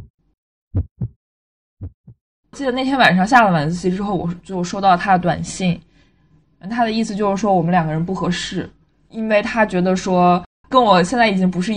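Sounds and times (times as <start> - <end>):
pounding heartbeat sound effect: 0.7 - 1.2, 1.8 - 2.2
speech: 0.7 - 1.2, 2.6 - 5.9, 6.6 - 11.7.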